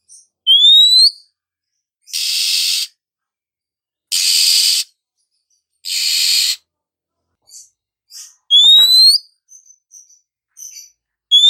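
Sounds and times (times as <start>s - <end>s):
female Oriental magpie-robin calling with rising whistled slurs: 0.0s - 1.3s, 2.0s - 3.0s, 4.1s - 4.9s, 5.5s - 6.6s, 7.5s - 11.4s.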